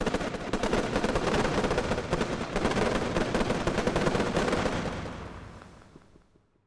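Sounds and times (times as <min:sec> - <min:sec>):
simultaneous fireworks finale: 0:00.0 - 0:06.6.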